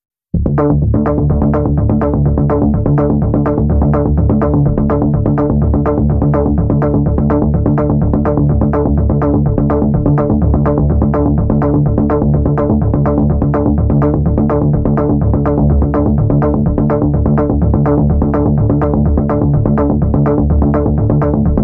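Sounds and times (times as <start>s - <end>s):
synth bass: 0.4s - 21.6s.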